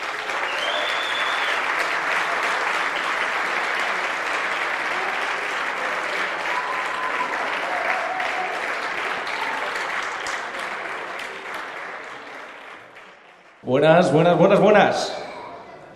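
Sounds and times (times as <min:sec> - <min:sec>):
audience applause: 0:00.0 - 0:13.9
speech: 0:13.7 - 0:15.2.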